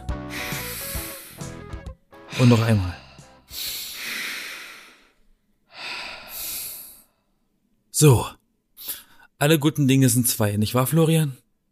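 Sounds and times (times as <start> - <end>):
deep breath: 0.2 - 1.6, 2.3 - 7.5, 8.8 - 9.4
speech: 2.4 - 3.6, 8.0 - 8.4, 9.4 - 11.4.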